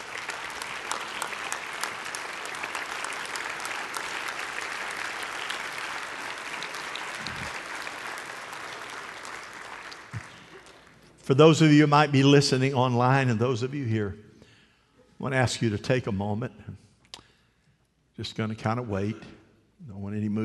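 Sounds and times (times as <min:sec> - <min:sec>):
audience applause: 0:00.0 - 0:11.0
speech: 0:11.3 - 0:14.2, 0:15.2 - 0:16.7, 0:18.2 - 0:19.4, 0:20.0 - 0:20.4.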